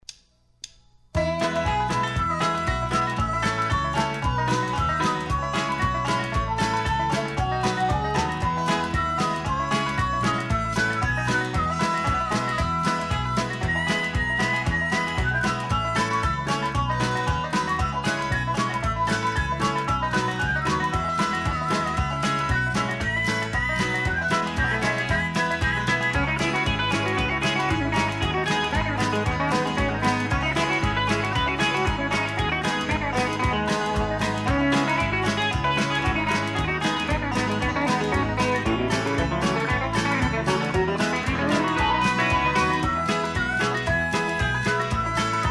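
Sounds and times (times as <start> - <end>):
instrumental theme music: 0.6 - 45.4.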